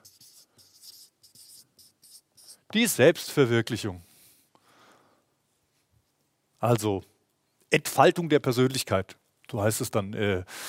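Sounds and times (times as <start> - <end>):
pen or marker scratching across a surface: 0.0 - 2.8
speech: 2.7 - 4.1, 6.6 - 7.1, 7.7 - 10.6.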